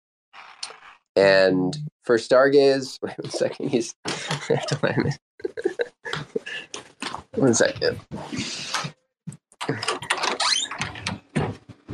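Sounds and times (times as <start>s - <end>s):
speech: 1.2s - 5.8s, 7.4s - 9.0s, 9.6s - 10.0s
laughter: 2.7s - 8.8s
door being locked: 9.7s - 11.5s.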